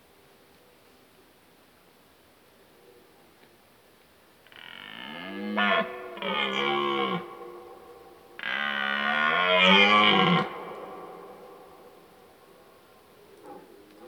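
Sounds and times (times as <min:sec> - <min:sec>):
red deer stag roaring: 0:04.5 - 0:12.1.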